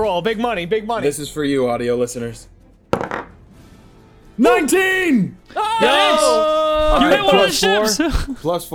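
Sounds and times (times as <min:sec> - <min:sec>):
speech: 0:00.0 - 0:02.6, 0:04.4 - 0:08.7
physical d20 die rolling: 0:02.9 - 0:03.4.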